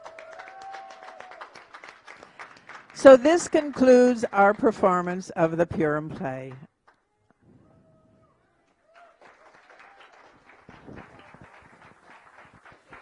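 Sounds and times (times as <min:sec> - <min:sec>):
audience applause for the cast: 0:00.0 - 0:04.2, 0:08.7 - 0:13.0
speech: 0:03.0 - 0:06.7.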